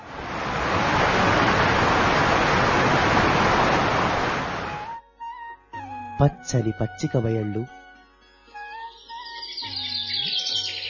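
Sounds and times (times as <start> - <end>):
roaring waterfalls: 0.0 - 4.9
rushing streams: 0.0 - 4.9
speech: 6.2 - 7.8.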